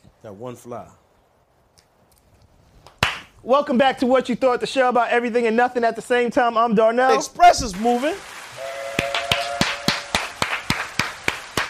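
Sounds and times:
speech: 0.2s - 1.0s, 3.4s - 8.3s
hand claps: 2.8s - 3.3s, 9.0s - 11.6s.

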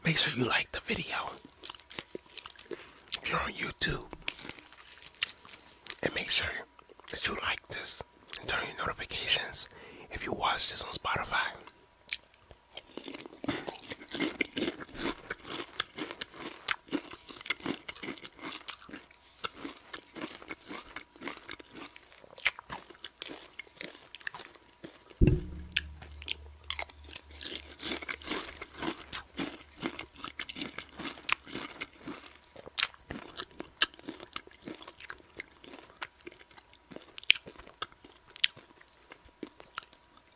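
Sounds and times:
speech: 0.1s - 1.5s, 3.3s - 4.2s, 6.0s - 11.8s
crunching and chewing cereal: 1.1s - 8.8s, 10.4s - 25.2s, 27.0s - 40.3s
low hum: 25.2s - 30.2s.

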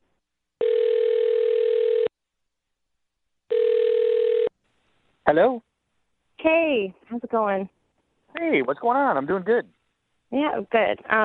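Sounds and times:
telephone ringing: 0.6s - 2.1s, 3.5s - 4.5s
speech: 5.3s - 5.7s, 6.4s - 11.2s.

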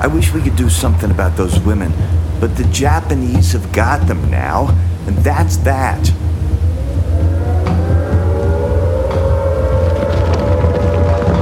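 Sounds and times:
speech: 0.0s - 6.3s
Stinson Gullwing airplane engine: 6.2s - 11.4s.

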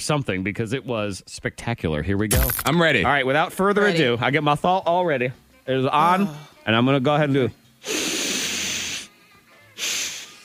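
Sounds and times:
speech: 0.0s - 8.0s
person sniffing before a shot: 7.8s - 9.1s, 9.8s - 10.4s.

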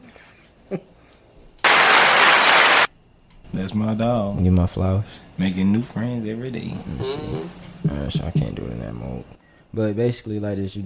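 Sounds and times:
speech: 0.7s - 0.9s, 3.6s - 10.8s
hands clapping: 1.6s - 2.9s.

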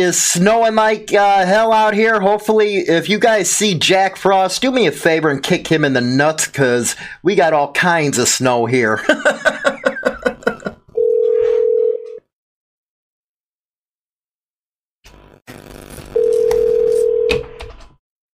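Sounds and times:
speech: 0.0s - 9.8s
laughter: 9.0s - 10.9s
telephone being dialed: 16.2s - 17.6s.

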